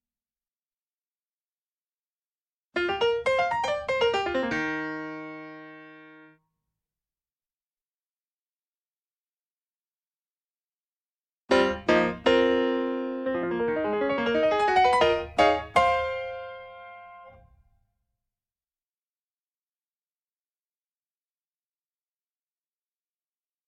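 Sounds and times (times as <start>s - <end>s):
piano: 2.8s - 6.4s, 11.5s - 17.8s.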